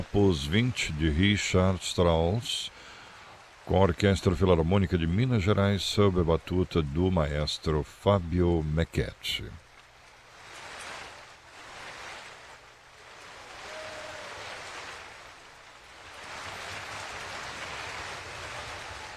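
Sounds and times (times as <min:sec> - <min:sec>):
speech: 0:00.0 - 0:02.9, 0:03.7 - 0:09.6
standing audience applauding the performance: 0:13.2 - 0:15.4, 0:16.0 - 0:19.1.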